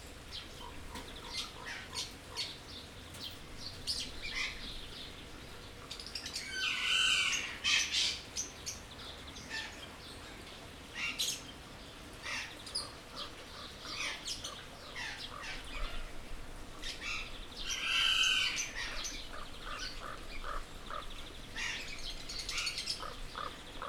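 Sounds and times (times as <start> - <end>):
zoo birds chirping with squeaky notes: 0.1 - 23.8.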